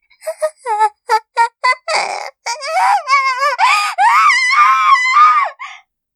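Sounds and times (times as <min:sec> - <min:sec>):
person screaming: 0:01.9 - 0:05.6.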